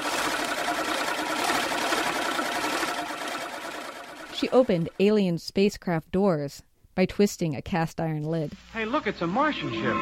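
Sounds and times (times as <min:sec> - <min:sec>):
egg beater whirring in imitation of a lawnmower: 0:00.0 - 0:05.2
speech: 0:04.4 - 0:10.0.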